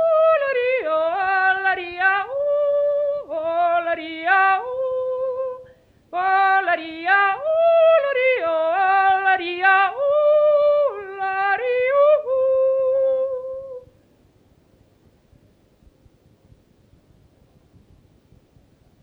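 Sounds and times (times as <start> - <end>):
person singing a patois song from Grimentz Anniviers: 0.0 - 13.9.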